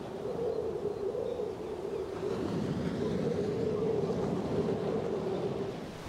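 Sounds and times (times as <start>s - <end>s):
storm wind at the coast: 0.0s - 6.0s
waves at the coast: 1.5s - 6.0s.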